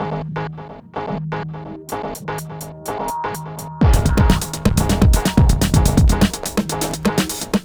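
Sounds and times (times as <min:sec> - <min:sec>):
hardcore breakbeat in E minor: 0:01.9 - 0:07.6.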